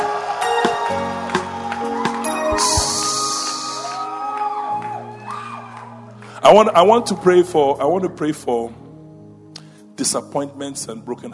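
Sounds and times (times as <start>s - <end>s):
audience cheering with whoops and shouts: 0.0s - 6.2s
audience clapping: 0.0s - 7.0s
speech: 6.5s - 8.8s, 10.0s - 11.3s.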